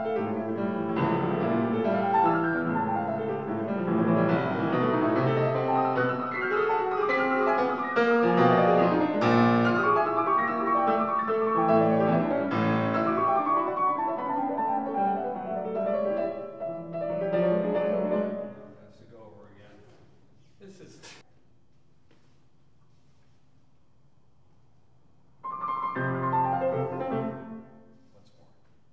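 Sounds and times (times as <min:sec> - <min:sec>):
piano playing: 0:00.0 - 0:19.0, 0:25.4 - 0:28.0.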